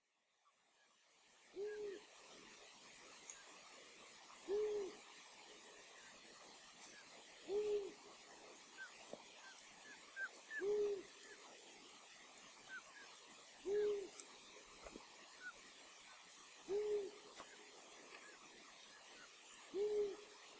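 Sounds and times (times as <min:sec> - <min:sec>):
long-eared owl hooting: 0:01.5 - 0:02.1, 0:04.5 - 0:05.0, 0:07.4 - 0:08.1, 0:10.0 - 0:11.4, 0:12.7 - 0:14.2, 0:16.7 - 0:17.3, 0:19.6 - 0:20.5.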